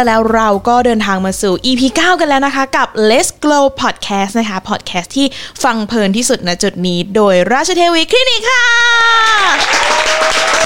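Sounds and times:
speech: 0:00.0 - 0:10.6
crowd applause sound effect: 0:09.4 - 0:10.6.

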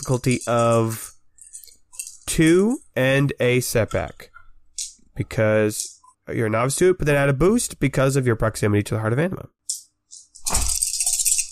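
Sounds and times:
chunky dice rattling and rolling: 0:00.0 - 0:02.8, 0:09.7 - 0:11.5
speech: 0:00.1 - 0:01.1, 0:02.3 - 0:04.3, 0:05.2 - 0:09.6.

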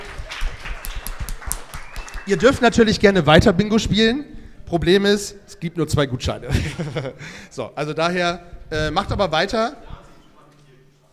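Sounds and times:
audience applause: 0:00.0 - 0:02.6
speech: 0:02.3 - 0:09.9
laughter: 0:06.4 - 0:07.4.

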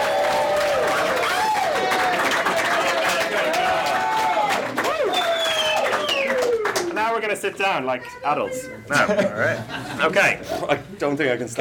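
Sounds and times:
cheering and whoops: 0:00.0 - 0:06.8
crowd applause: 0:00.0 - 0:07.2
speech: 0:07.4 - 0:11.6.

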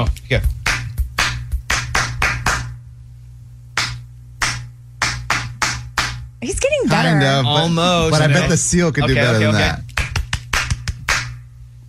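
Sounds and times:
rhythmic hand claps: 0:00.0 - 0:02.8, 0:03.7 - 0:06.3, 0:09.8 - 0:11.5
low steady hum: 0:00.0 - 0:11.8
speech: 0:00.3 - 0:00.6, 0:07.1 - 0:09.9.

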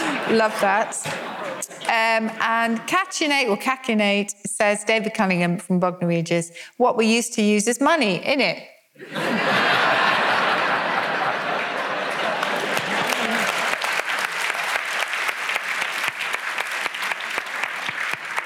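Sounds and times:
audience laughter: 0:00.0 - 0:02.2, 0:09.0 - 0:14.0
speech: 0:00.3 - 0:09.7
audience applause: 0:09.8 - 0:18.4.

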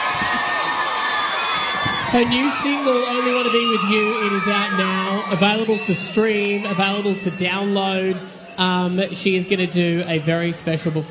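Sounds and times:
audience applauding and cheering: 0:00.0 - 0:08.2
speech: 0:02.1 - 0:11.0.

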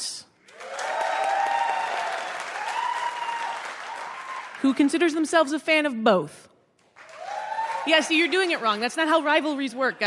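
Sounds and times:
faint cheering: 0:00.5 - 0:04.6, 0:07.1 - 0:08.1
crowd applause: 0:00.5 - 0:04.8, 0:07.0 - 0:09.3
speech: 0:04.6 - 0:06.4, 0:07.9 - 0:10.0.

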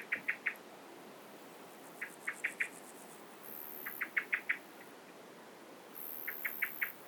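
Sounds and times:
grasshoppers stridulating in a meadow: 0:01.8 - 0:04.7, 0:06.0 - 0:07.0.

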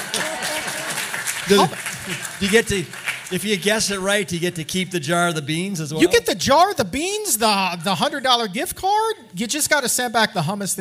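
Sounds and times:
audience applause: 0:00.0 - 0:04.2
speech: 0:01.5 - 0:10.7.

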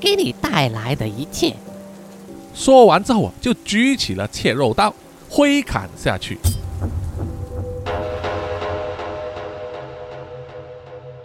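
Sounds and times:
speech: 0:00.0 - 0:01.7, 0:02.6 - 0:07.0
steady dense rain in a thunderstorm: 0:00.0 - 0:10.3
low continuous thunder rumble: 0:06.6 - 0:09.1.

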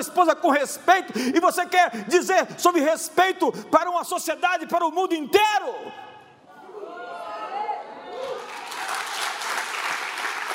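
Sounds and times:
speech: 0:00.0 - 0:06.1
timid audience applause: 0:08.2 - 0:10.5.

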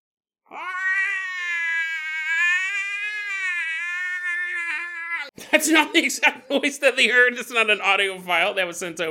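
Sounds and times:
speech: 0:00.5 - 0:00.8, 0:05.4 - 0:09.0
screaming: 0:00.5 - 0:05.3.

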